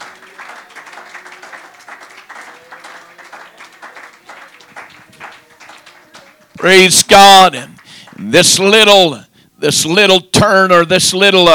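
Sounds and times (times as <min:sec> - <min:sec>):
audience clapping hands: 0:00.0 - 0:09.1
speech: 0:06.6 - 0:11.5.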